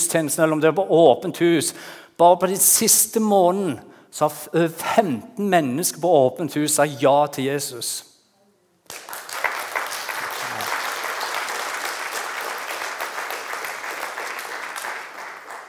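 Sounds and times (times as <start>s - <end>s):
speech: 0.1s - 8.1s
audience applause: 8.9s - 15.6s.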